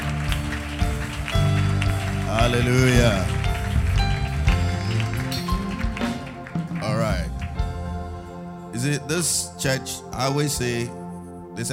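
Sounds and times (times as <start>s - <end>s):
audience clapping: 0.0s - 8.5s
speech: 2.5s - 3.4s, 8.8s - 11.0s, 11.6s - 11.7s.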